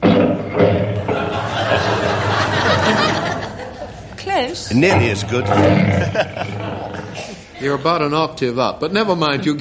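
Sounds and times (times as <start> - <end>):
lion roaring: 0.0 - 2.9, 4.7 - 7.4
laughter: 1.0 - 4.2, 5.6 - 8.3
speech: 4.5 - 9.5.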